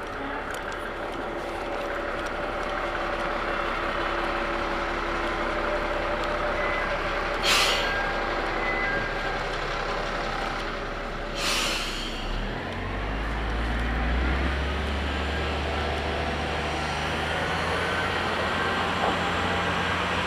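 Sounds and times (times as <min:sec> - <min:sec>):
Tenryu Hamanako Railroad train car rumble: 0:00.0 - 0:20.2
sharp hisses: 0:11.4 - 0:12.3.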